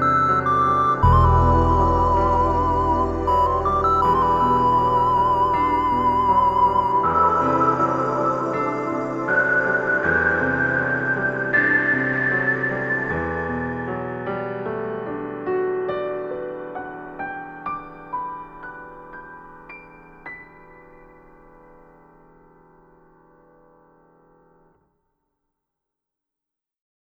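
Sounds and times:
story background music: 0.0 - 20.8.

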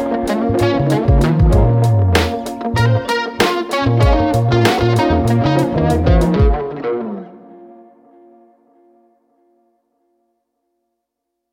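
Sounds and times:
funk lounge music: 0.0 - 7.6.

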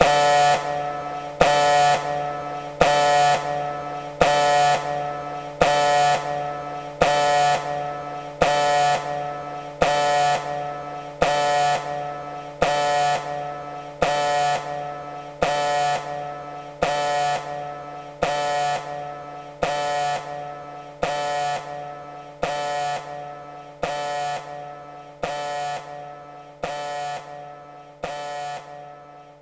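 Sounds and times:
alarm: 0.0 - 29.3.

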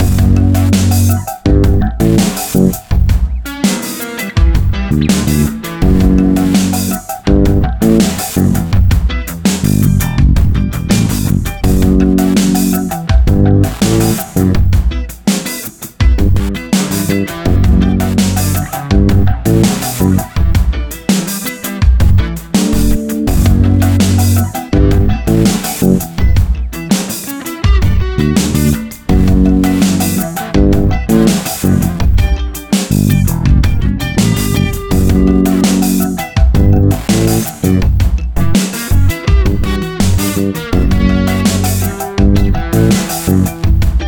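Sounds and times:
tense music: 0.0 - 3.3, 4.5 - 14.8, 16.2 - 20.7, 22.0 - 26.6, 27.8 - 43.9.

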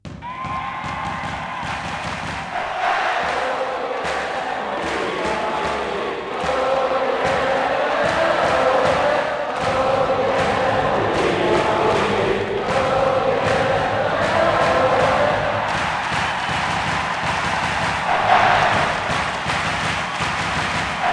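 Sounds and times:
European chants: 0.4 - 21.1.

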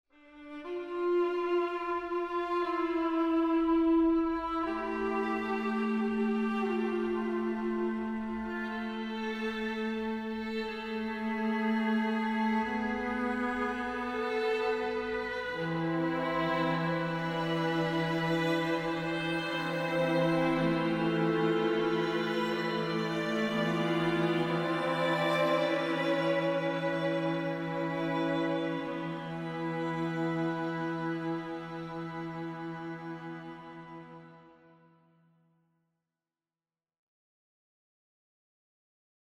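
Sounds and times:
romantic music: 0.2 - 34.5.

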